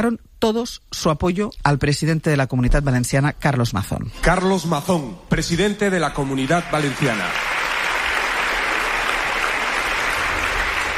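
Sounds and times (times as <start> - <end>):
speech: 0.0 - 7.5
long standing ovation applause: 6.4 - 10.9.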